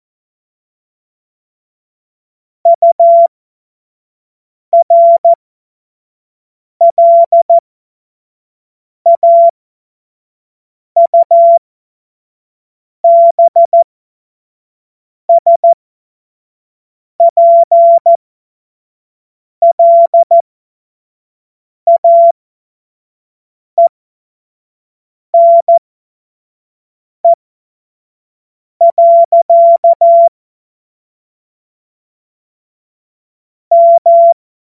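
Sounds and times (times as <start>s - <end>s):
CW Morse code beeps: 2.7s - 3.3s, 4.8s - 5.4s, 6.8s - 7.6s, 9.1s - 9.5s, 11.0s - 11.6s, 13.0s - 13.8s, 15.3s - 15.8s, 17.2s - 18.2s, 19.6s - 20.4s, 21.9s - 22.4s, 25.4s - 25.8s, 28.8s - 30.3s, 33.7s - 34.4s.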